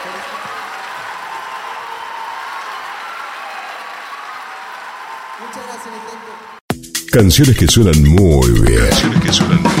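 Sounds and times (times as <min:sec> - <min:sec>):
audience applause: 0:00.0 - 0:06.6
speech: 0:05.4 - 0:09.7.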